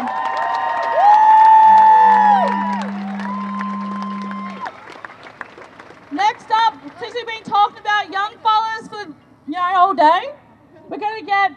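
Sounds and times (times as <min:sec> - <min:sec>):
crowd applause: 0:00.0 - 0:08.6.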